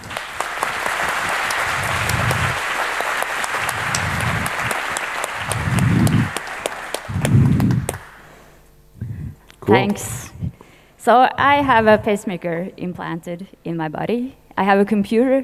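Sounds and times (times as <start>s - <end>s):
audience applause: 0.0s - 8.4s
laughter: 0.0s - 8.4s, 9.0s - 10.6s, 11.3s - 12.5s
speech: 9.7s - 10.3s, 11.0s - 15.4s.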